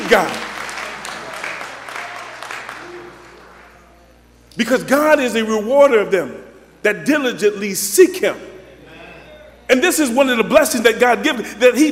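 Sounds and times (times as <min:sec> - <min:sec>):
audience clapping hands: 0:00.0 - 0:03.9
speech: 0:00.1 - 0:00.4, 0:04.6 - 0:08.5, 0:09.7 - 0:11.9.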